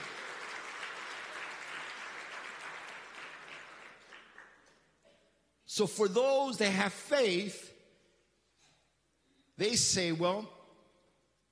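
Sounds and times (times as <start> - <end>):
crowd applauding loudly: 0.0 - 4.5
speech: 5.8 - 7.7, 9.6 - 10.6.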